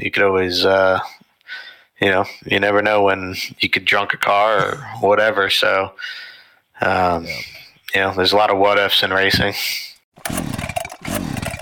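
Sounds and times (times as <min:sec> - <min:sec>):
speech: 0:00.0 - 0:10.4
small lawn equipment engine sputtering and failing to start: 0:10.2 - 0:11.5.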